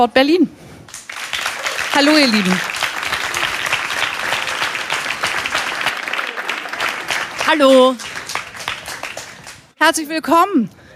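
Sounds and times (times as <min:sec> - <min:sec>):
speech: 0:00.0 - 0:01.0, 0:02.0 - 0:02.7, 0:07.5 - 0:08.1, 0:09.8 - 0:10.8
audience applause: 0:00.9 - 0:09.7.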